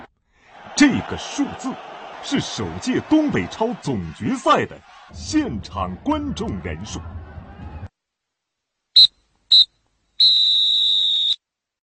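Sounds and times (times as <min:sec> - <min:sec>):
speech: 0:00.8 - 0:07.2
referee's final whistle blasts: 0:09.0 - 0:11.4.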